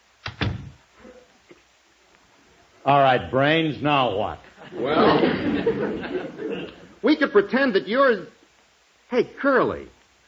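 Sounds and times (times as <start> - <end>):
door being shut: 0.2 - 0.8
speech: 2.8 - 8.4, 9.1 - 10.0
laughter: 4.5 - 7.0.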